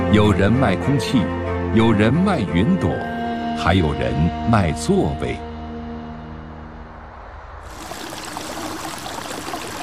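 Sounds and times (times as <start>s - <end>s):
speech: 0.1s - 5.5s
water flowing in a village stream: 7.7s - 9.8s.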